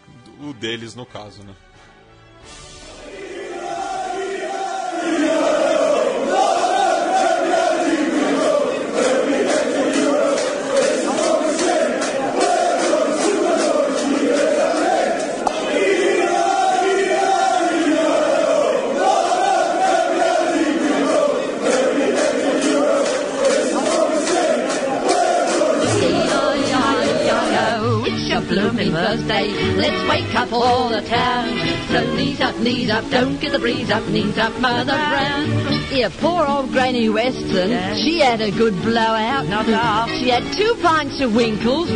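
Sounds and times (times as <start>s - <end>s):
speech: 0.4s - 1.9s, 29.2s - 41.9s
huge football crowd chanting a melodic song in unison: 2.9s - 36.0s.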